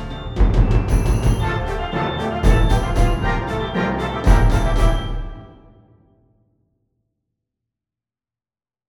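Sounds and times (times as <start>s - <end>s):
wind orchestra woodwind backings: 0.0s - 5.9s.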